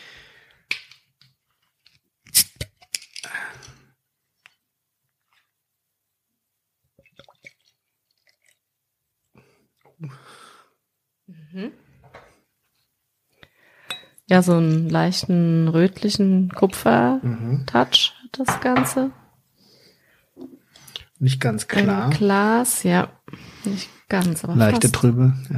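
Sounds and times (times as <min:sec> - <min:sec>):
beer bottle being opened with a sharp crack and brief hiss: 0:02.2 - 0:03.3
speech: 0:11.6 - 0:11.8, 0:14.3 - 0:19.2, 0:21.2 - 0:25.5.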